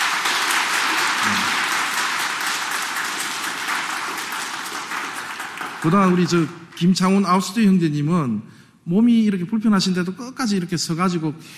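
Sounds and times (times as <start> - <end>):
audience applause: 0.0 - 6.9
speech: 5.8 - 11.5.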